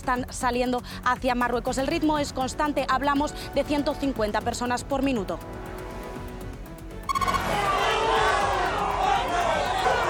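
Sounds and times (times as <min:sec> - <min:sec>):
speech: 0:00.0 - 0:05.7
crowd shouting and hurling insults: 0:07.2 - 0:10.0.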